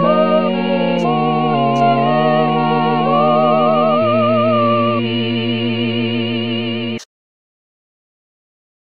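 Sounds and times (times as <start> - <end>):
full choir singing a sacred piece: 0.0 - 7.0.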